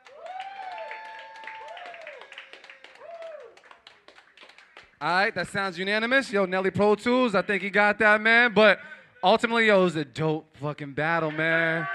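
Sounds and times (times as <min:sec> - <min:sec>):
voices whooping and cheering: 0:00.0 - 0:03.6
crowd clapping: 0:00.0 - 0:05.2
speech: 0:05.0 - 0:11.9.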